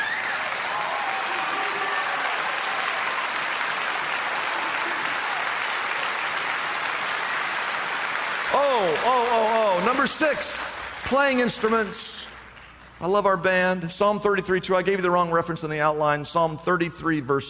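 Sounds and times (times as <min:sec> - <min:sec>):
audience applauding: 0:00.0 - 0:13.1
speech: 0:09.0 - 0:12.2, 0:13.0 - 0:17.4.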